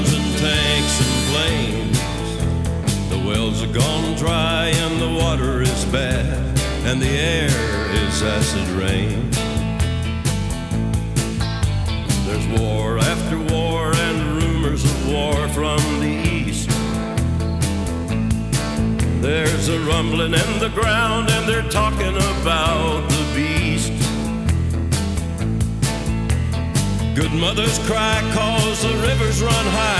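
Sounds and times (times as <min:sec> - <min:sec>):
country music: 0:00.0 - 0:29.9.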